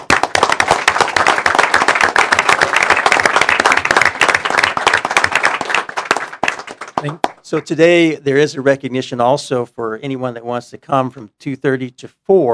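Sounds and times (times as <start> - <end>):
crowd applause: 0.0 - 7.6
speech: 7.0 - 12.5.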